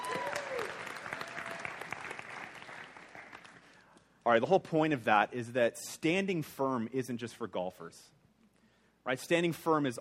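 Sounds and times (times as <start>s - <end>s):
audience applause: 0.0s - 3.8s
speech: 4.3s - 8.2s, 9.0s - 10.0s.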